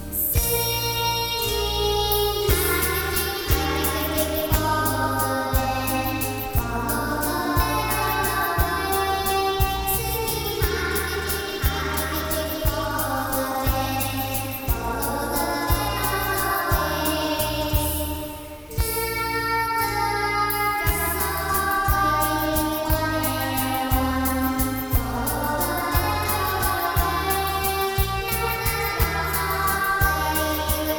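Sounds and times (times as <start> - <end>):
person singing a nursery rhyme: 0.1 - 30.9.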